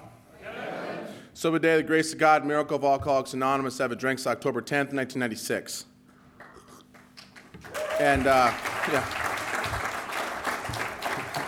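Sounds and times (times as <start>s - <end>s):
speech: 1.4s - 5.9s, 8.0s - 9.2s
audience applause at an Alcoholics Anonymous meeting: 7.2s - 11.4s.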